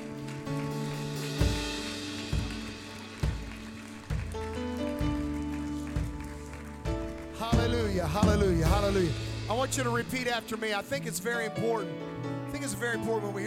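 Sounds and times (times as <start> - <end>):
audience clapping: 0.0 - 9.1
speech: 7.8 - 13.4.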